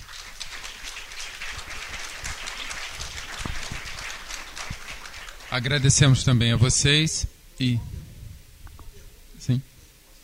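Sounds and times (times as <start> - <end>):
audience applause: 0.0 - 6.6
speech: 5.5 - 7.9, 9.5 - 9.7.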